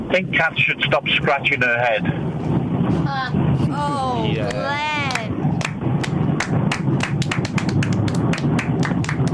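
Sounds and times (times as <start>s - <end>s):
speech: 0.1s - 5.0s
applause: 4.5s - 9.3s.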